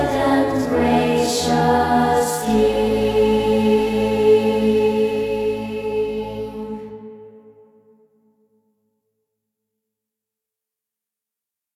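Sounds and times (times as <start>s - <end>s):
choir singing: 0.0s - 7.9s.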